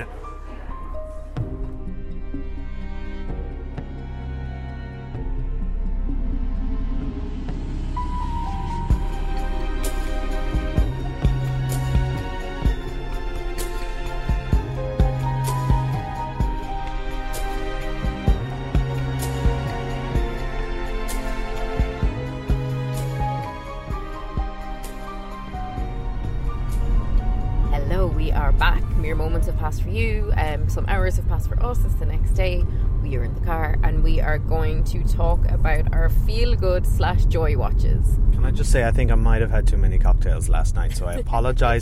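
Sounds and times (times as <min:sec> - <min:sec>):
instrumental TV series theme music: 0:00.0 - 0:30.6
speech: 0:29.6 - 0:41.8.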